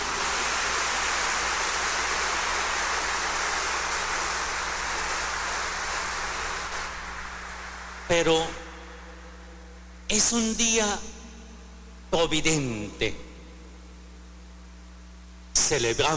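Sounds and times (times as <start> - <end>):
crowd applause: 0.0 - 8.1
speech: 8.1 - 8.6, 10.1 - 11.1, 12.1 - 13.2, 15.6 - 16.1.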